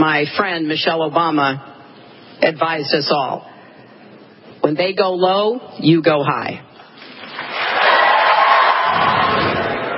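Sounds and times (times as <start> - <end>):
speech: 0.0 - 1.7, 2.4 - 3.5, 4.6 - 6.7
audience applause after a speech line: 7.2 - 9.9.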